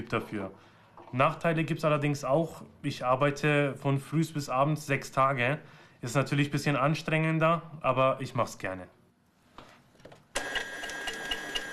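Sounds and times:
speech: 0.0s - 9.0s
tailor's sewing machine running in an alterations workshop: 10.4s - 11.7s.

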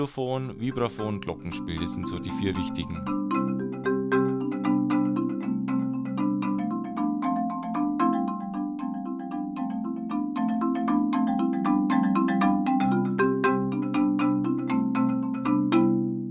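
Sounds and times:
speech: 0.0s - 3.3s
marimba playing: 0.0s - 16.2s.

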